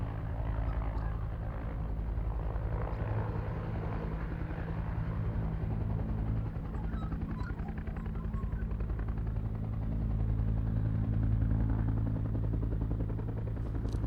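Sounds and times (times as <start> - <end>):
distant 1967 Bell UH-1 Iroquois helicopter hovering: 0.0 - 14.0.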